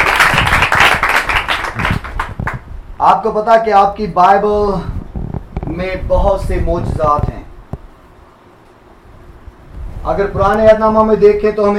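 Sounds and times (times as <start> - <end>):
audience clapping loudly at a Christian worship gathering: 0.0 - 2.7
speech: 3.0 - 5.0, 5.8 - 7.3, 10.0 - 11.7.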